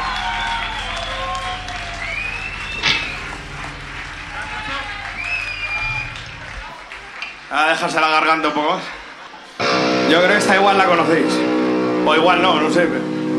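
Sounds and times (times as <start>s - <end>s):
live concert crowd applauding: 0.0s - 9.6s
sharp whistles: 0.2s - 6.8s
loud thump: 2.8s - 7.1s
speech: 7.5s - 9.0s, 10.1s - 13.2s.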